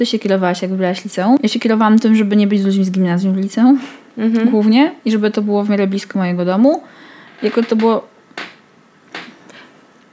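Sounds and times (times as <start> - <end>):
speech: 0.0 - 8.5
neighbours' floor creaking overhead: 7.1 - 9.9.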